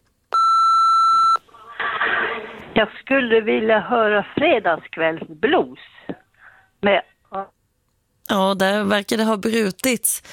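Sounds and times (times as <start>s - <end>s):
answering machine beep: 0.4s - 1.4s
speech: 2.8s - 6.2s, 6.8s - 7.6s, 8.3s - 10.3s.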